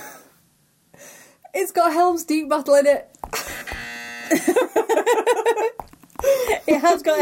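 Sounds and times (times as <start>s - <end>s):
speech: 1.6s - 3.2s, 4.3s - 4.8s, 6.7s - 7.2s
harsh steady electronic buzzer: 3.5s - 4.5s
laughter: 4.3s - 5.8s.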